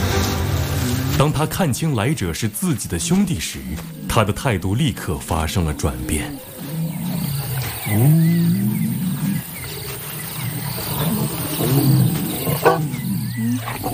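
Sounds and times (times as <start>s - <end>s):
insects and crickets humming: 0.2s - 13.9s
speech: 1.2s - 6.5s, 7.9s - 8.6s
lions roaring: 2.8s - 13.9s.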